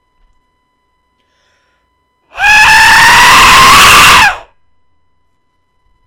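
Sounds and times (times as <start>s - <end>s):
death scream: 2.3s - 4.5s.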